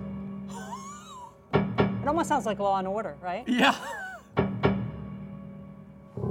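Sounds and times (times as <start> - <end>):
dampened piano string struck by the hammer with sustain on: 1.5 - 2.8, 4.4 - 5.5
speech: 2.1 - 4.0.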